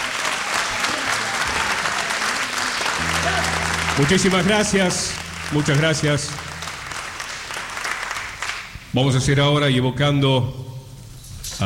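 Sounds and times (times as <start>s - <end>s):
audience applause: 0.0s - 8.8s
speech: 4.0s - 6.4s, 9.0s - 10.6s.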